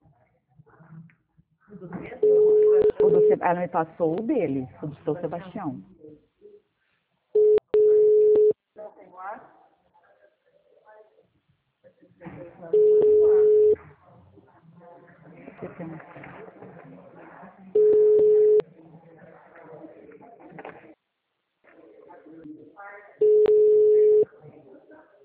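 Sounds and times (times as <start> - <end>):
people talking quietly: 0.0 - 6.7, 7.4 - 25.2
telephone ringing tones: 2.2 - 3.4, 7.4 - 8.6, 12.8 - 13.8, 17.8 - 18.6, 23.2 - 24.3
speech: 2.2 - 6.0.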